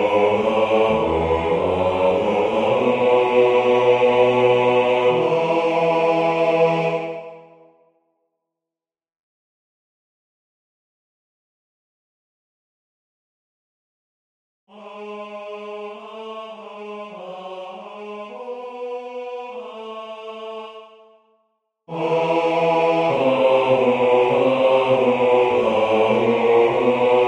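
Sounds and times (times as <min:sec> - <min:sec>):
bass voice singing a hymn: 0:00.0 - 0:07.3, 0:21.9 - 0:27.2.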